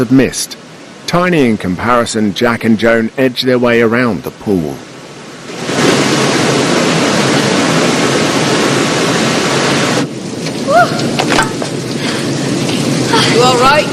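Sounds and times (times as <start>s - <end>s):
speech: 0.0s - 4.9s
white water thundering over a sheer drop into a plunge pool: 0.0s - 13.9s.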